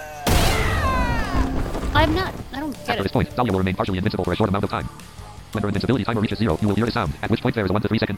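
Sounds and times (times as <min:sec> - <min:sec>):
game punch impacts: 0:00.2 - 0:02.6
speech: 0:02.0 - 0:08.1.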